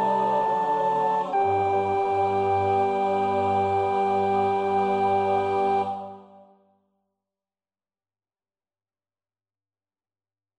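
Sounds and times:
soprano singing: 0:00.0 - 0:06.5.

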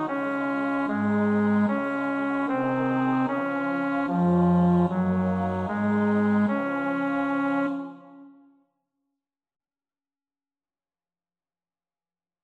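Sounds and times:
bass: 0:00.0 - 0:07.7.

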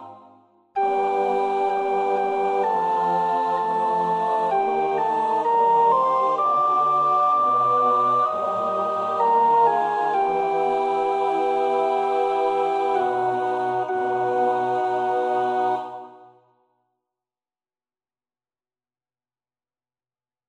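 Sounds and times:
soprano singing: 0:00.0 - 0:16.3.

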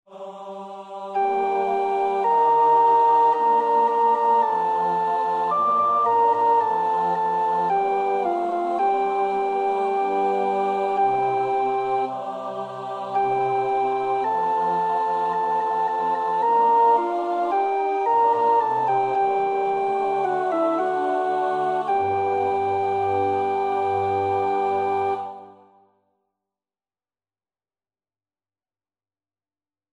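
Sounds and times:
soprano practising a choir part: 0:00.1 - 0:25.8.

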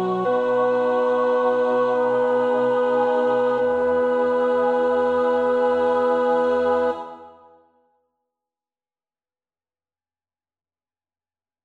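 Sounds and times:
tenor singing: 0:00.0 - 0:07.4.

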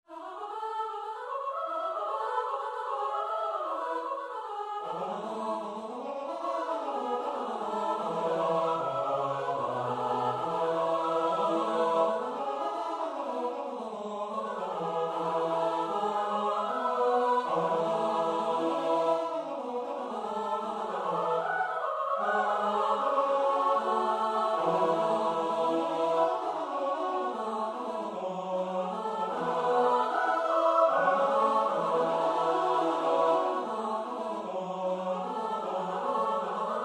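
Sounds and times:
SATB choir part practice: 0:00.1 - 0:36.8.

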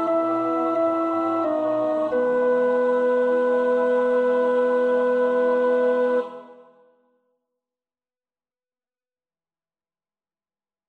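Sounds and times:
alto choir part practice singing: 0:00.0 - 0:06.8.

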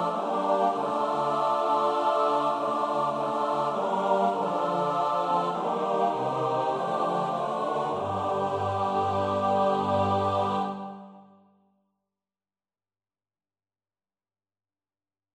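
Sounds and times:
SATB choir part practice: 0:00.0 - 0:11.4.

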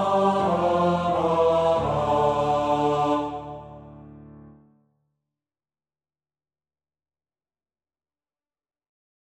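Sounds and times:
SATB four-part choir singing a Dutch song: 0:00.0 - 0:04.2.

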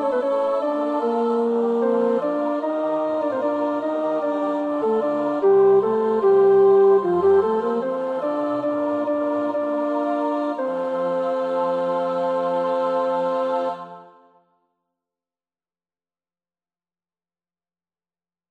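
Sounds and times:
tenor singing: 0:00.0 - 0:14.2.

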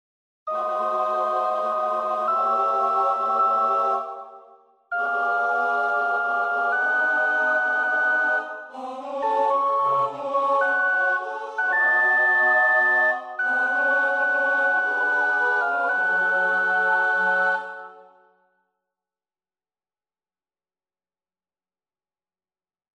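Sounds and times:
soprano practising a choir part: 0:00.5 - 0:18.2.

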